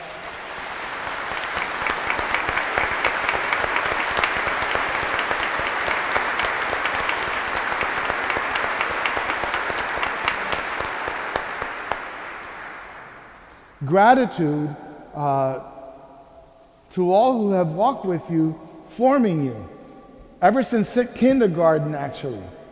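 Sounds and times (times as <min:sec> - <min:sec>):
audience applause: 0:00.0 - 0:13.4
speech: 0:13.9 - 0:15.7, 0:17.0 - 0:19.8, 0:20.4 - 0:22.6.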